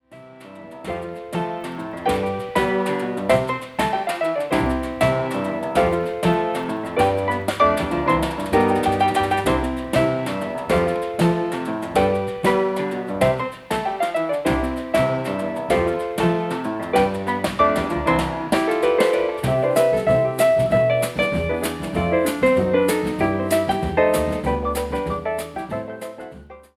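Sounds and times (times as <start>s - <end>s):
piano quartet playing: 0.2s - 26.7s.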